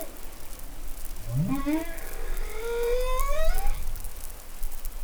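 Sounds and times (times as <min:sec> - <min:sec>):
humpback whale song: 0:01.3 - 0:03.9.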